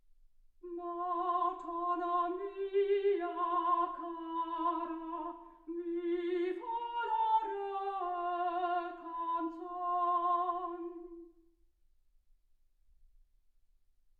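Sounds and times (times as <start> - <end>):
soprano singing: 0.6 - 11.4.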